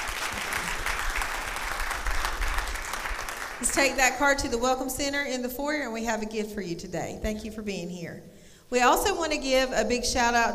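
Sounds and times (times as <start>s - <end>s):
church congregation applauding a first-time attender: 0.0s - 4.0s
speech: 3.6s - 10.5s.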